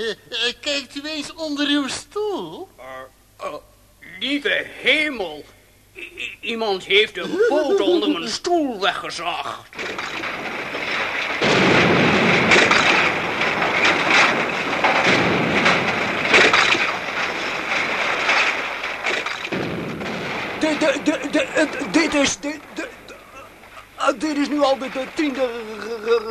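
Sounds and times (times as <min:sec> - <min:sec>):
speech: 0:00.0 - 0:10.3, 0:20.8 - 0:23.0, 0:24.0 - 0:26.2
laughter: 0:07.2 - 0:08.4
explosion blowing up a hall, roaring rumble: 0:09.9 - 0:26.2.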